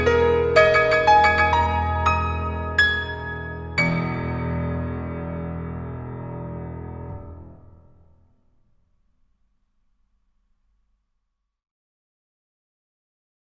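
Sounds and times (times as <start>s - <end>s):
piano piece: 0.0s - 8.8s.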